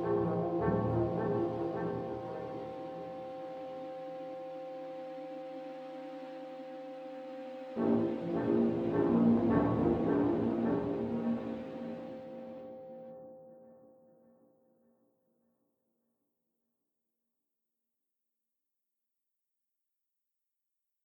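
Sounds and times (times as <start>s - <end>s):
ambient brass music: 0.0s - 3.7s, 7.8s - 12.6s.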